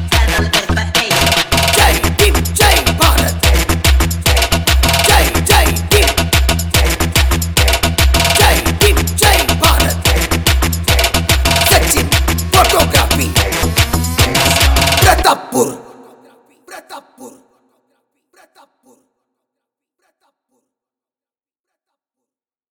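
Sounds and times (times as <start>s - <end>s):
jump bass trance dance remix: 0.0s - 15.4s.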